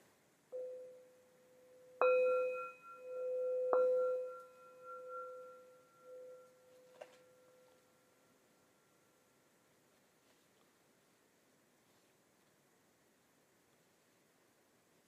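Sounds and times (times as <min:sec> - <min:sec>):
bell ringing: 0:02.0 - 0:07.7.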